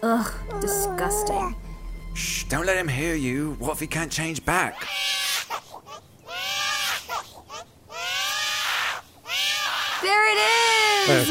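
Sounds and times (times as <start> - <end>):
speech: 0.1 - 5.2, 10.1 - 11.3
demon baby crying: 4.8 - 11.3.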